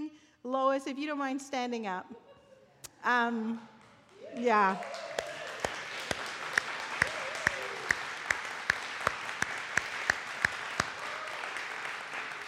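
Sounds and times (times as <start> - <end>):
speech: 0.4 - 2.3, 3.0 - 3.7, 4.3 - 5.1
audience applause: 4.1 - 12.4.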